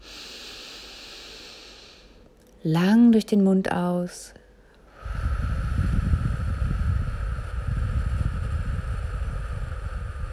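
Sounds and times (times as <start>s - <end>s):
deep breath drawn in through the nose: 0.0s - 2.2s, 4.9s - 10.3s
speech: 2.6s - 4.4s.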